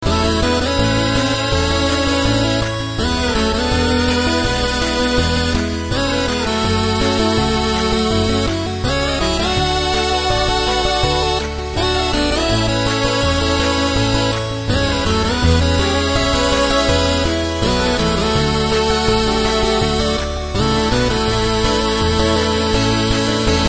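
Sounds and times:
8-bit chiptune: 0:00.0 - 0:23.6.

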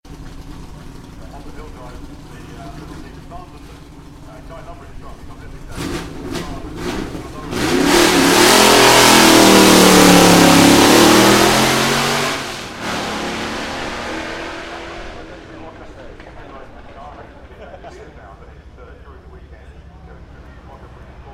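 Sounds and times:
Ford V8 engine in AC Cobra: 0:00.0 - 0:21.3
laughter: 0:15.6 - 0:18.8.

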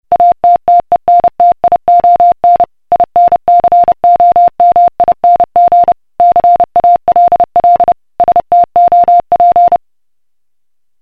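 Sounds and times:
Morse code call: 0:00.1 - 0:09.8.

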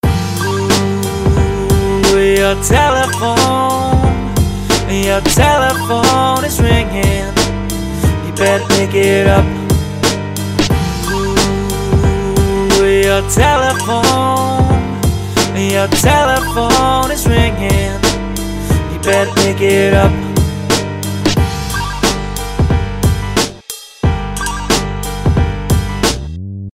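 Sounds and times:
chilled hip hop beat: 0:00.0 - 0:26.3.

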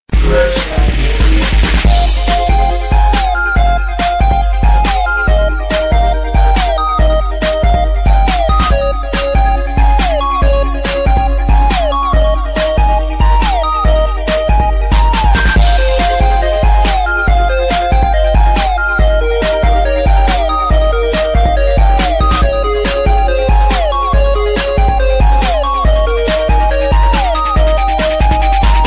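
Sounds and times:
electronic game music remix: 0:00.1 - 0:28.8.

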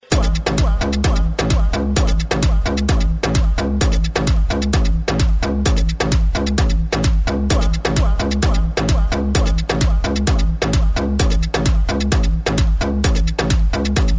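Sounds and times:
club music: 0:00.0 - 0:14.1.

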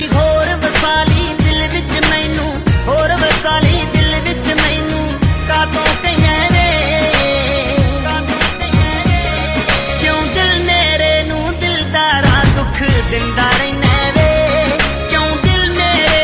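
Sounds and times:
Punjabi music: 0:00.0 - 0:16.2.

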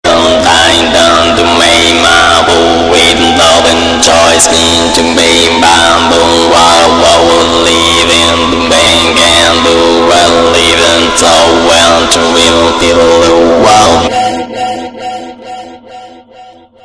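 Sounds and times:
trance music: 0:00.0 - 0:16.8.

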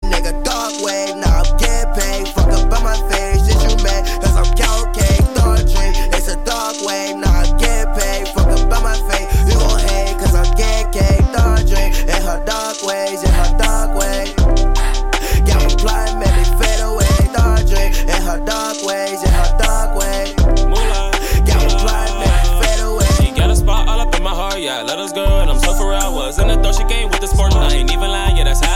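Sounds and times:
darkwave music: 0:00.0 - 0:28.7.

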